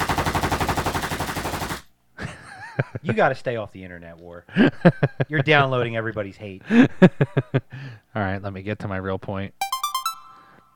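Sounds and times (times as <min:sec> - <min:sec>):
Gatling gun firing sound effect: 0:00.0 - 0:01.8
speech: 0:03.0 - 0:09.6.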